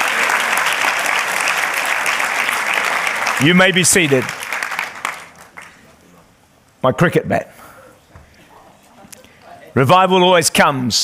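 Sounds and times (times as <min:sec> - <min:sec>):
audience applauding: 0:00.0 - 0:06.0
speech: 0:03.4 - 0:04.4, 0:06.8 - 0:07.7, 0:09.8 - 0:11.0.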